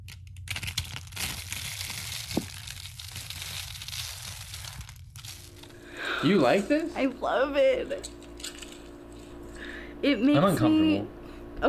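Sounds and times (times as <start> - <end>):
soap curls being crushed: 0.0 - 7.0, 8.0 - 9.6
speech: 6.2 - 8.2, 10.0 - 11.6.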